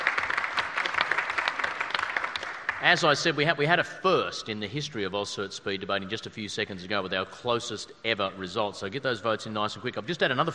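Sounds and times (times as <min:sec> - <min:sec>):
audience applause: 0:00.0 - 0:03.2
speech: 0:02.8 - 0:10.5.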